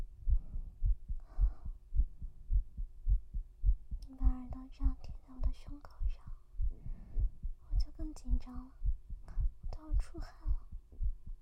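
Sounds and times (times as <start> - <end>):
faint steady hum: 0.0 - 11.4
fast heartbeat: 0.0 - 11.4
speech: 4.7 - 6.2, 8.0 - 8.8, 9.8 - 10.6.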